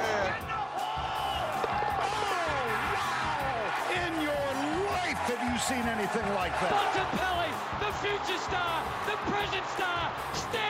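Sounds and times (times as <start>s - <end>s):
football crowd cheering: 0.0s - 10.6s
speech: 5.6s - 10.6s.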